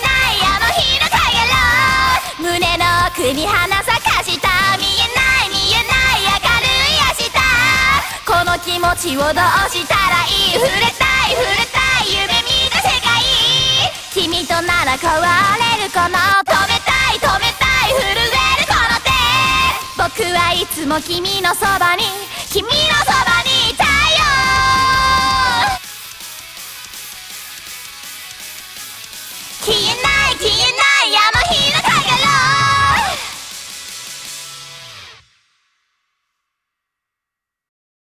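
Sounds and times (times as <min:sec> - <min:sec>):
a cappella singing: 0:00.0 - 0:25.8, 0:29.6 - 0:33.4.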